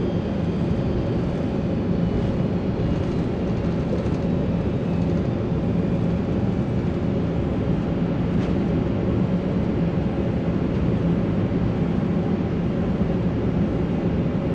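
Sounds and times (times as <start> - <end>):
airplane ambience: 0.0 - 14.5.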